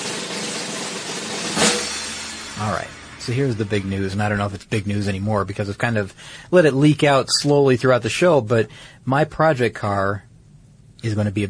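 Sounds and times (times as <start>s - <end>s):
snare drum roll: 0.0s - 5.3s
speech: 2.6s - 10.3s, 11.0s - 11.4s.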